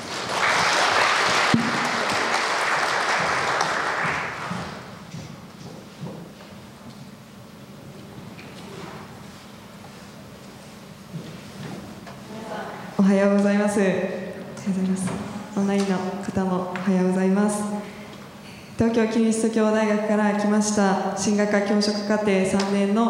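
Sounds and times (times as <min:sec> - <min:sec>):
room full of people applauding in welcome: 0:00.0 - 0:04.9
speech: 0:13.2 - 0:14.1, 0:15.7 - 0:17.8, 0:18.8 - 0:23.0.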